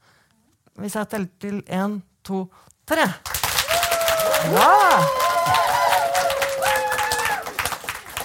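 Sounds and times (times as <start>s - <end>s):
speech: 0.8s - 3.4s, 4.4s - 5.8s
live audience clapping on command: 3.2s - 8.2s.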